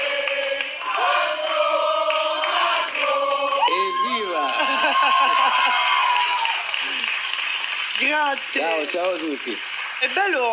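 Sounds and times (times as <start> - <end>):
studio audience clapping: 0.0 - 10.5
laughter: 3.8 - 7.1
speech: 8.2 - 10.5.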